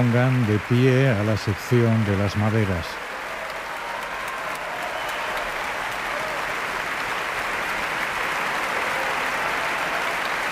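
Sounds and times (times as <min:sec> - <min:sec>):
speech: 0:00.0 - 0:03.1
large concert audience applause: 0:00.0 - 0:10.5.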